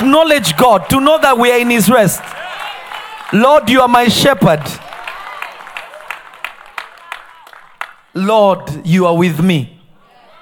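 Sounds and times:
audience clapping in a steady, even rhythm: 0.0s - 8.2s
speech: 0.1s - 2.4s, 3.3s - 4.8s, 8.2s - 9.7s.

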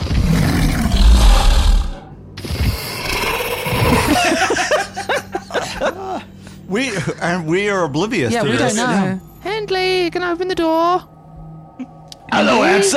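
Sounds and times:
deep monstrous werewolf roar: 0.0s - 4.2s
werewolf snarling growls and yelps: 0.0s - 4.4s
laughter: 4.0s - 7.4s
speech: 6.7s - 11.1s, 11.8s - 12.9s.

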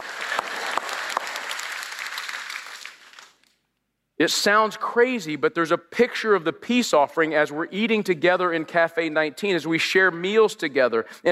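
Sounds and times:
audience applause: 0.0s - 3.4s
speech: 4.2s - 11.3s.

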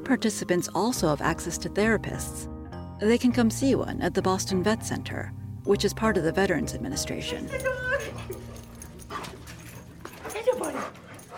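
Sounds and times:
speech: 0.1s - 8.5s
therapy dog whimpering and panting at door: 7.2s - 11.3s.

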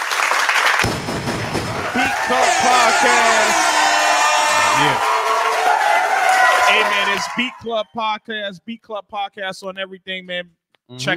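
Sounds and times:
live audience clapping and cheering: 0.0s - 8.0s
whoops and shouted voices: 1.7s - 7.9s
speech: 2.3s - 3.7s, 4.8s - 5.1s, 6.8s - 11.1s.

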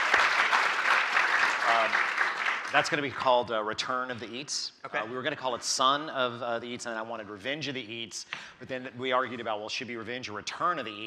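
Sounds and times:
audience applause: 0.0s - 3.3s
speech: 2.7s - 11.0s.

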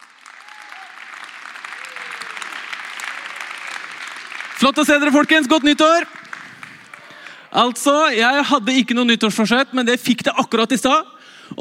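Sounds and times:
crowd applauding: 0.0s - 8.1s
speech: 4.6s - 6.2s, 7.6s - 11.5s.

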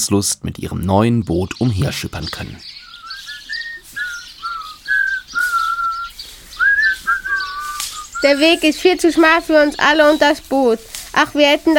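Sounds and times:
speech: 0.0s - 2.8s, 8.2s - 11.7s
person whistling a cheerful tune: 3.1s - 8.4s.

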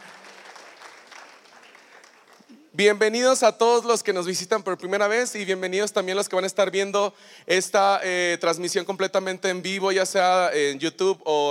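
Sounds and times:
audience applause: 0.0s - 2.5s
speech: 2.8s - 11.4s.

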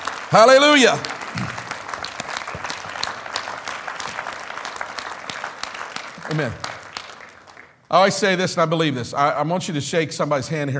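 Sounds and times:
crowd clapping in praise: 0.0s - 7.9s
speech: 0.3s - 1.5s, 6.3s - 6.7s, 7.9s - 10.7s.

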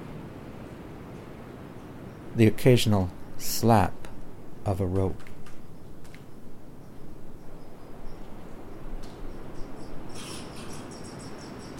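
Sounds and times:
speech: 2.4s - 4.0s, 4.7s - 5.3s
squirrel: 10.1s - 11.7s.

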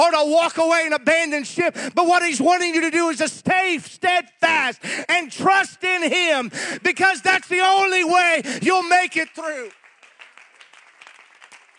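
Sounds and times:
speech: 0.0s - 9.8s
audience applauding: 9.2s - 11.7s.

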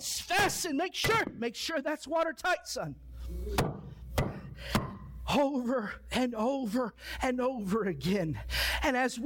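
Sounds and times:
speech: 0.0s - 3.9s, 4.6s - 9.2s
hammer striking wooden boards: 3.6s - 5.0s.

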